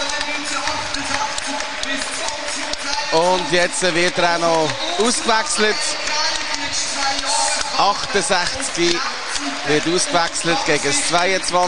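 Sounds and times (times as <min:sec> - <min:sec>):
stadium crowd applause, standing ovation in St. Jakob Park: 0:00.0 - 0:11.6
speech: 0:03.1 - 0:06.2, 0:07.8 - 0:11.6.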